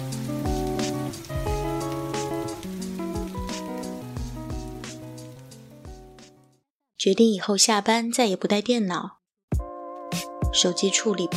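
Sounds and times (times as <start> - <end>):
light rain falling: 0.0 - 6.4
speech: 7.0 - 9.2, 10.6 - 11.3
Japanese pop music: 9.6 - 11.3.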